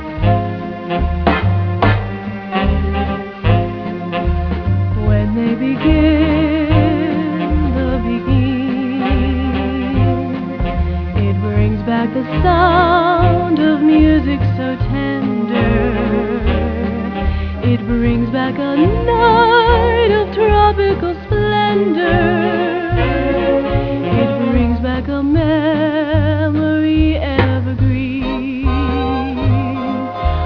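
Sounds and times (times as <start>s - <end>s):
beguine dance music: 0.0s - 30.4s.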